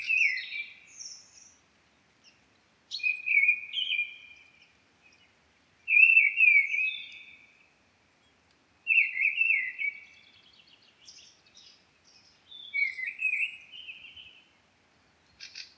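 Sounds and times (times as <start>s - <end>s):
mistle thrush Turdus viscivorus calling: 0.0s - 1.6s, 2.2s - 5.3s, 5.9s - 7.7s, 8.9s - 14.5s, 15.3s - 15.7s.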